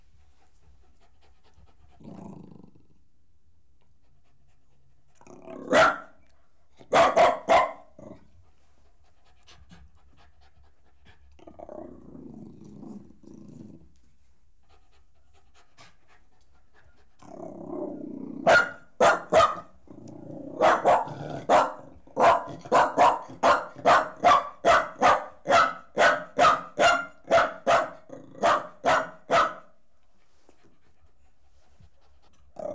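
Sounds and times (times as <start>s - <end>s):
dog growling: 2.0s - 3.0s, 5.2s - 5.8s, 11.4s - 13.9s, 17.2s - 18.5s, 19.9s - 21.5s, 32.6s - 32.7s
dog barking: 5.7s - 6.2s, 6.9s - 7.9s, 18.4s - 19.7s, 20.6s - 29.7s.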